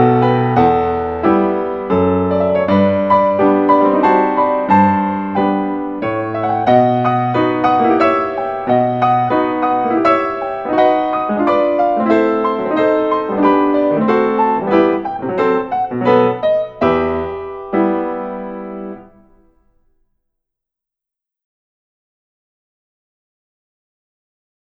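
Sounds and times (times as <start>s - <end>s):
waltz in E minor: 0.0s - 19.5s.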